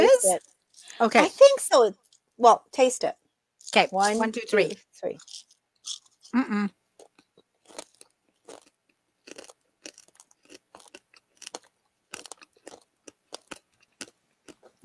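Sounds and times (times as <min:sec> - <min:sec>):
speech: 0:00.3 - 0:06.8
biting and chewing a paper-thin wafer candy with crunchy candies: 0:05.2 - 0:06.4, 0:07.0 - 0:14.8.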